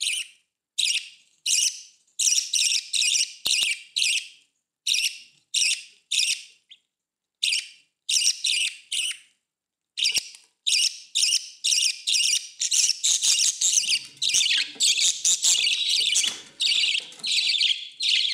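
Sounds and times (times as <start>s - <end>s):
budgerigar chirping and chattering: 0.0s - 4.3s, 4.9s - 6.7s, 7.4s - 9.3s, 10.0s - 18.3s.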